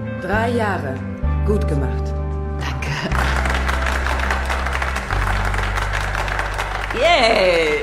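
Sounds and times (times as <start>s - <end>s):
speech: 0.2s - 2.2s, 7.0s - 7.8s
audience clapping: 3.1s - 7.8s.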